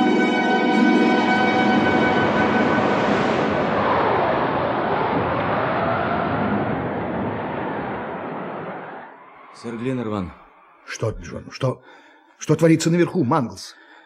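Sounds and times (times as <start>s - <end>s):
hurricane wind: 1.1s - 9.1s
speech: 9.6s - 13.8s.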